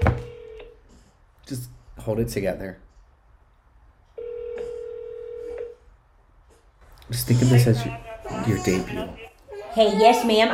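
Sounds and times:
speech: 1.5 - 2.9, 7.1 - 10.5
telephone dialing and ringing: 4.2 - 5.7.

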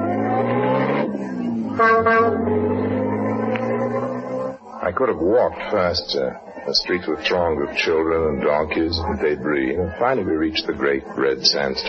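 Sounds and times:
old taxi engine droning: 0.0 - 10.6
taxi horn honking: 1.7 - 2.7
speech: 5.0 - 11.8.

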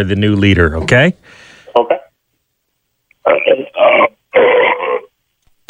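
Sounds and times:
speech: 0.0 - 2.0, 3.2 - 4.6
short rough vocal bursts: 3.3 - 5.1
loud burp into a telephone: 3.4 - 5.1.

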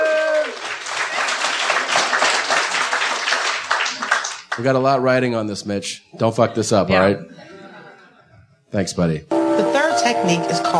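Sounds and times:
audience applause for a sound technician at a live comedy show in Pasadena: 0.0 - 4.7
speech: 4.6 - 7.5, 8.7 - 9.4, 10.1 - 10.7
laughter: 6.4 - 8.6.

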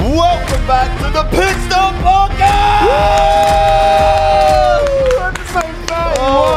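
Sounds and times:
speech: 0.1 - 4.1
crowd cheering wildly: 1.6 - 6.5.

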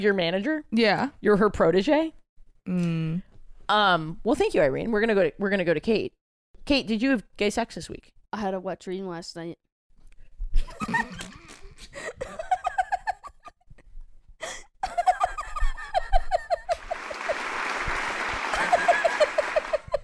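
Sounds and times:
speech: 0.0 - 9.7
laughter: 10.7 - 13.5, 14.8 - 20.0
self-congratulatory applause: 16.7 - 20.0.

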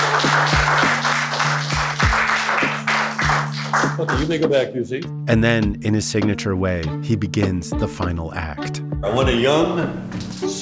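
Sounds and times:
audience applause: 0.0 - 4.3
speech: 4.0 - 10.5.

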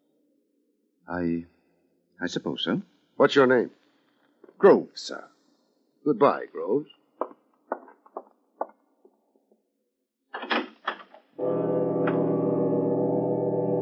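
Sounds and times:
speech: 1.1 - 1.6, 2.2 - 3.8, 4.6 - 5.3, 6.0 - 7.0
clicks and knocks: 7.2 - 9.2
door opening: 10.4 - 11.2
sustained musical drone: 11.4 - 13.8.

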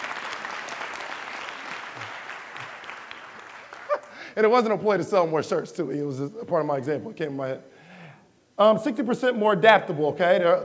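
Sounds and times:
audience applause: 0.0 - 4.2
speech: 4.4 - 7.7, 8.6 - 10.6.

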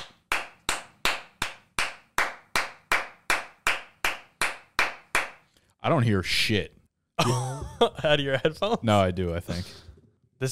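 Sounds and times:
sharp hand claps: 0.0 - 5.5
speech: 5.8 - 10.4.

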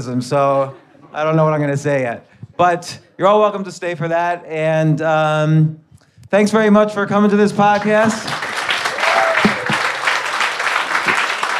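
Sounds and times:
speech: 0.0 - 8.4
audience applause: 7.7 - 11.5.

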